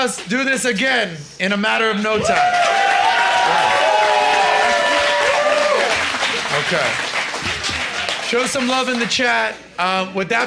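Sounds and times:
speech: 0.0 - 2.8, 6.6 - 7.1, 8.3 - 10.4
faint cheering: 2.2 - 6.3
crowd applause: 2.4 - 9.6.

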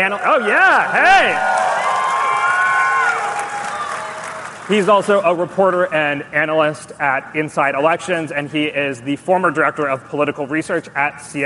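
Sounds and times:
speech: 0.0 - 1.6, 4.7 - 11.4
audience clapping for a guest speaker at a live evening event: 0.0 - 5.9
shrill cheering voices: 0.2 - 4.5.

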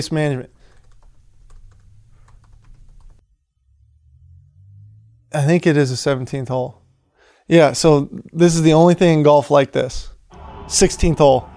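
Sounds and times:
speech: 0.0 - 0.6, 5.3 - 6.8, 7.5 - 10.1, 10.7 - 11.5
typing on a computer keyboard: 0.7 - 3.2
low hum: 1.2 - 5.5, 10.2 - 11.5.

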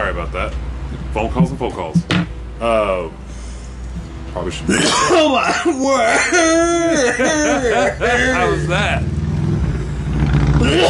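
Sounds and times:
speech: 0.1 - 3.3, 4.4 - 9.2, 10.6 - 10.8
laughter: 4.7 - 9.0
motorcycle engine revving: 8.1 - 10.8.

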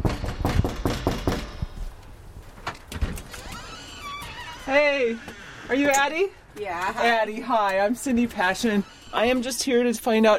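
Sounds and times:
knocking on a front door: 0.0 - 1.6
speech: 4.7 - 10.3.

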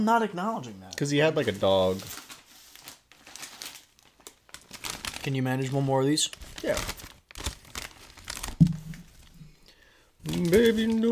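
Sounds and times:
speech: 0.0 - 2.2, 5.2 - 6.9, 10.4 - 11.1
crinkling bag of chips: 1.5 - 9.4, 10.2 - 11.1.

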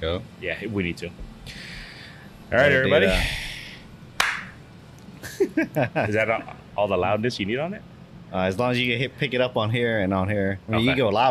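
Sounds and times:
speech: 0.0 - 1.7, 2.5 - 3.4, 5.4 - 11.2
hand clap for audio sync: 4.2 - 4.6.

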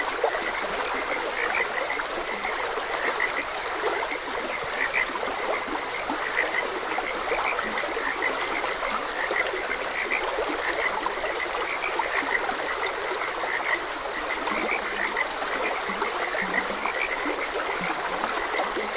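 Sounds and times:
frogs croaking: 0.0 - 18.9.

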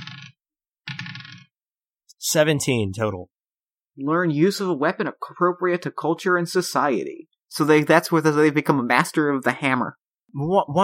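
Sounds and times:
two d20 dice clattering across a hard surface: 0.0 - 0.3, 0.9 - 1.5
speech: 2.2 - 3.4, 4.0 - 10.8.

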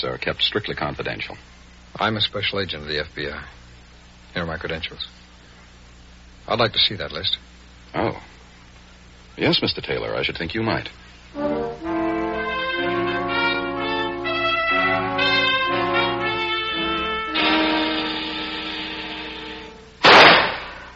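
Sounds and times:
speech: 0.0 - 3.6, 4.4 - 5.2, 6.5 - 8.3, 9.4 - 12.1
sustained music: 11.4 - 20.0
pistol shot at target practice: 20.0 - 20.9.

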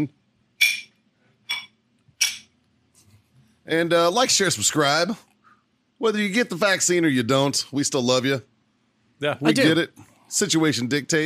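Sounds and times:
glasses clinking in a toast: 0.6 - 2.5
speech: 3.7 - 5.3, 6.0 - 8.5, 9.2 - 11.2.

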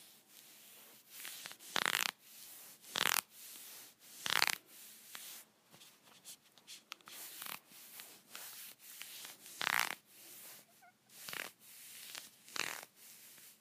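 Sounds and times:
fingernails scratching against leggings: 1.2 - 2.2, 2.9 - 3.2, 4.2 - 5.3, 7.1 - 12.9.

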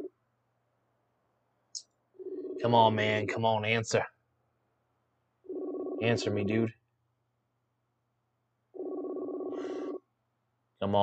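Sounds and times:
speech: 2.6 - 4.1, 6.0 - 6.8, 10.8 - 11.0
phone ringback tone: 5.5 - 6.5, 8.8 - 10.0.

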